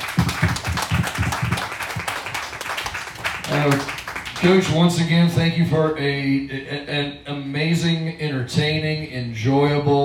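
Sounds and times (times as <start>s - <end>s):
audience applause: 0.0s - 4.8s
speech: 3.5s - 10.0s.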